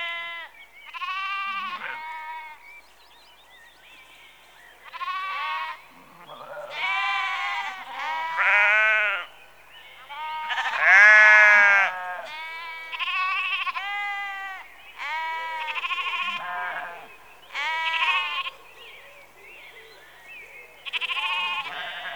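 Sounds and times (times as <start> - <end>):
sheep bleating in a rural setting: 0.0 - 2.6, 4.8 - 9.3, 10.0 - 18.5, 20.8 - 22.1.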